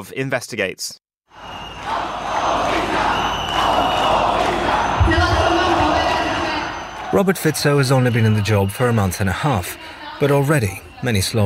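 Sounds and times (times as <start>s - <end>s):
speech: 0.0s - 1.5s, 7.1s - 11.4s
protest crowd chanting in the street: 1.3s - 11.4s.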